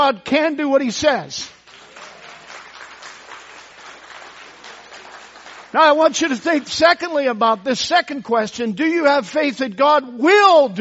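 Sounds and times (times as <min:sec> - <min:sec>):
speech: 0:00.1 - 0:01.6, 0:05.7 - 0:10.7
audience applause: 0:01.6 - 0:05.8.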